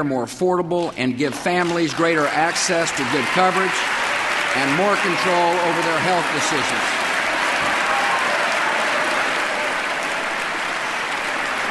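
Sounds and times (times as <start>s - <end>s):
speech: 0.0s - 7.0s
crowd applause: 1.3s - 11.6s
crowd cheering and whooping: 2.4s - 11.6s.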